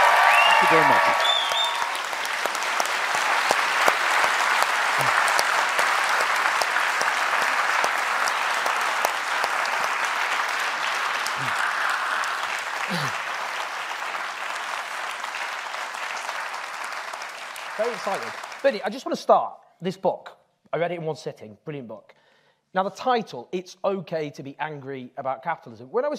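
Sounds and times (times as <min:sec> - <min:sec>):
audience applause: 0:00.0 - 0:19.0
speech: 0:00.6 - 0:01.3, 0:18.0 - 0:26.1.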